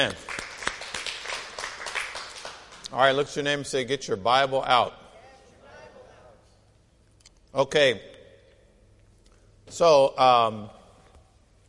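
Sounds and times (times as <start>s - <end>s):
speech: 0.0s - 0.3s, 2.9s - 5.0s, 7.6s - 8.1s, 9.7s - 10.8s
audience clapping: 0.0s - 3.0s.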